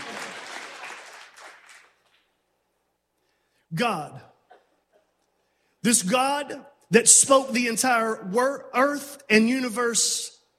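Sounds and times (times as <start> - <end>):
crowd clapping: 0.0 - 2.4
speech: 3.7 - 4.3, 5.8 - 10.4.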